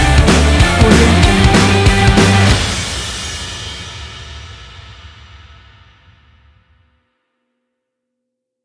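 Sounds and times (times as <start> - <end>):
sporty rock music: 0.0 - 3.4.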